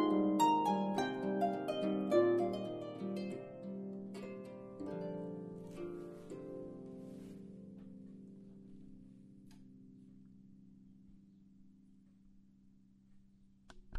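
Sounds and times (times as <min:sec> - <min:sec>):
34-string oak stringed instrument playing: 0:00.0 - 0:08.3.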